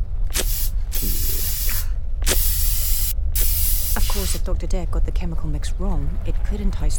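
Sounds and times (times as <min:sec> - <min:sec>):
insect repellent spray hissing: 0:00.3 - 0:04.4
speech: 0:04.4 - 0:06.9.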